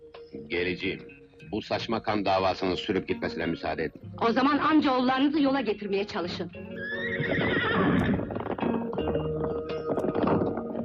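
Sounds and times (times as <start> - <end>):
speech: 0.5 - 7.9
horse neighing: 6.8 - 8.4
hooves clip-clopping: 6.8 - 10.8.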